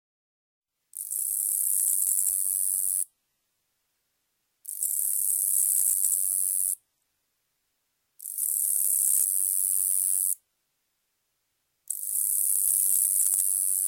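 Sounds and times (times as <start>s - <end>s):
Nebraska conehead katydid Neoconocephalus nebrascensis singing: 1.0s - 3.1s, 4.7s - 6.8s, 8.2s - 10.4s, 11.9s - 13.8s.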